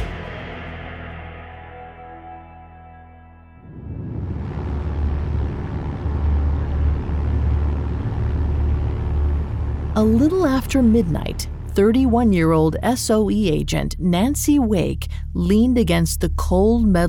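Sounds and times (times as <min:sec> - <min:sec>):
B-24 Liberator bomber engines humming in flight across the English Channel: 0:03.7 - 0:17.0
speech: 0:10.0 - 0:17.0.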